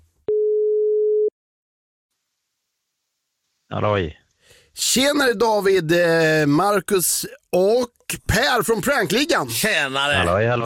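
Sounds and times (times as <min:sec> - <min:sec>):
telephone line tone after a number is dialed: 0:00.3 - 0:01.3
speech: 0:03.8 - 0:04.2, 0:04.8 - 0:10.6.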